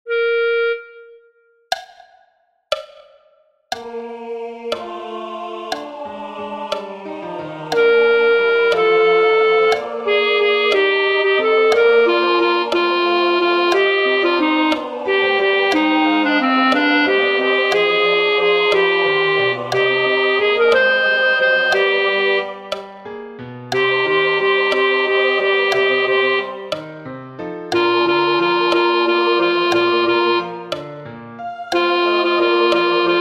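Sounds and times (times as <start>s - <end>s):
alto singing a Sanctus: 0.1s - 1.2s, 3.7s - 23.1s, 23.7s - 27.0s, 27.7s - 33.1s.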